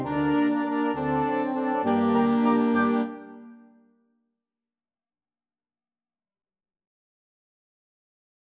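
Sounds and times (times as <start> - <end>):
brass instruments: 0.0 - 3.7.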